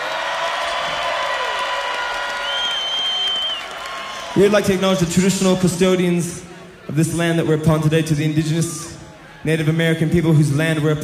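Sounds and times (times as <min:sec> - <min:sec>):
audience applause: 0:00.0 - 0:05.0
speech: 0:04.4 - 0:11.0.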